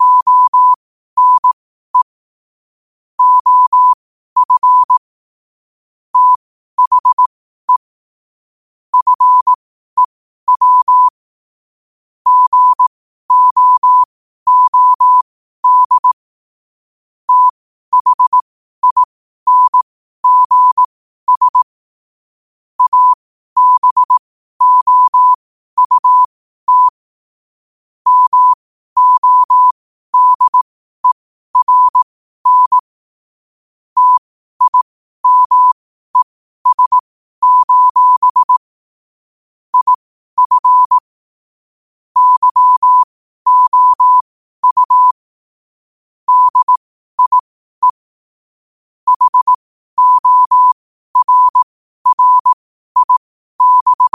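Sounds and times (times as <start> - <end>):
morse code at 5 wpm: 0.0 - 2.2, 3.2 - 5.0, 6.2 - 7.8, 9.0 - 11.2, 12.3 - 16.2, 17.3 - 21.7, 22.8 - 27.0, 28.0 - 32.9, 34.0 - 38.7, 39.7 - 41.1, 42.2 - 45.2, 46.3 - 48.0, 49.1 - 54.1.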